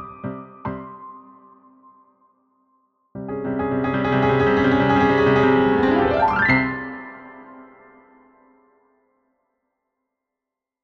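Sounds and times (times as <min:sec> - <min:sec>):
solo piano piece for elementary level: 0:00.0 - 0:02.1, 0:03.2 - 0:08.7.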